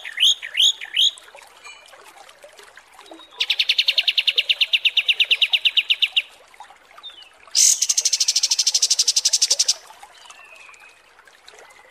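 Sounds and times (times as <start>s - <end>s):
kapas tembak song: 0.0s - 1.2s, 3.1s - 6.3s, 7.0s - 11.0s.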